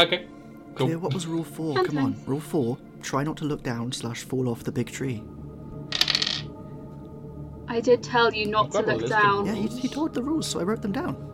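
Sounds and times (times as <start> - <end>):
speech: 0.0 - 5.4, 7.7 - 11.3
dice rolled across a hard surface: 5.9 - 6.5.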